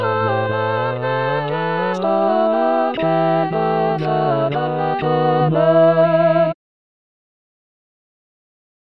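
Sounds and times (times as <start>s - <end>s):
canon music: 0.0s - 6.6s.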